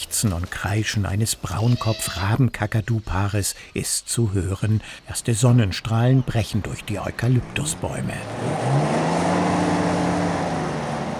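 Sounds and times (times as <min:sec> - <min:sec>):
speech: 0:00.2 - 0:09.0
off-road vehicle roaring over a bumpy red dirt track: 0:06.6 - 0:11.1.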